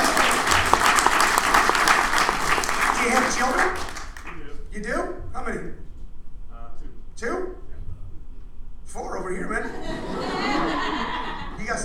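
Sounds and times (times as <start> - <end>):
laughter: 0.0 - 3.6, 9.6 - 11.8
audience applause for a married couple: 0.0 - 4.4.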